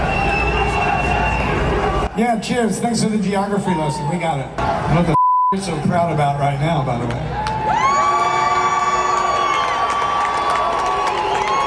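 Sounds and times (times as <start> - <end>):
crowd booing: 0.0 - 2.2, 7.3 - 11.6
speech: 2.2 - 7.5.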